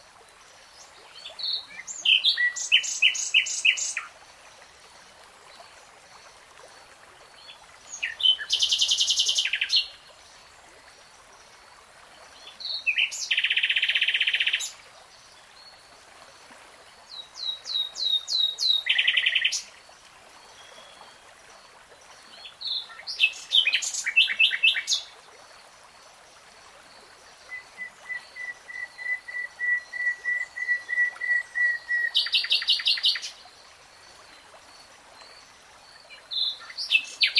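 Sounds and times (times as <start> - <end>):
nightingale song: 0.8 - 4.1, 7.4 - 10.0, 12.3 - 14.8, 17.1 - 19.7, 22.3 - 25.2, 27.4 - 33.5, 36.0 - 37.3.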